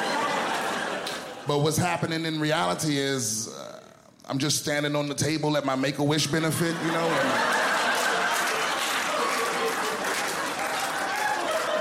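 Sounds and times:
laughter: 0:00.0 - 0:01.6, 0:06.3 - 0:11.8
speech: 0:01.5 - 0:07.6
comedy show audience cheering and applauding a stand-up comedian: 0:07.0 - 0:11.8.

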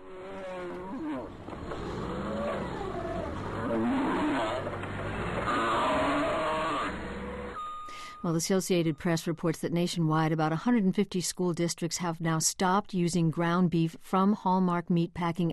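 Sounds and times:
injured cows bellowing and moaning: 0:00.0 - 0:07.6
low mechanical rumble: 0:00.0 - 0:07.6
speech: 0:03.8 - 0:04.8, 0:08.2 - 0:15.5.

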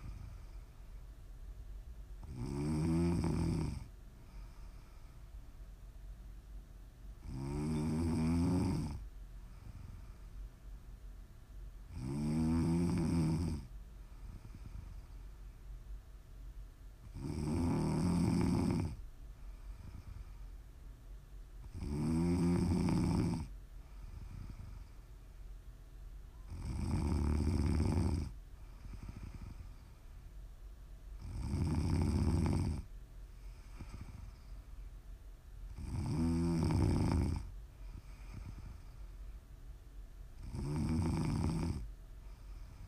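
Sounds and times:
faint constant hum: 0:00.0 - 0:42.8
quieter breaths: 0:00.0 - 0:42.8
heavy snoring: 0:02.2 - 0:04.9, 0:07.2 - 0:09.0, 0:11.9 - 0:15.1, 0:17.0 - 0:19.0, 0:21.6 - 0:25.0, 0:26.5 - 0:29.8, 0:31.2 - 0:32.9, 0:33.5 - 0:34.5, 0:35.7 - 0:38.9, 0:40.4 - 0:42.8.

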